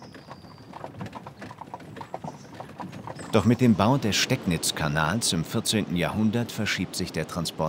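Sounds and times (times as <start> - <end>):
horse hooves clip-clopping pulling a wagon: 0.0 - 4.4
speech: 3.3 - 7.6.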